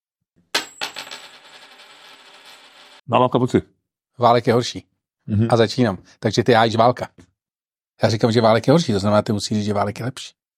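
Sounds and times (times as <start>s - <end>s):
coin tossed and landing: 0.5s - 3.0s
speech: 3.1s - 7.3s, 8.0s - 10.4s.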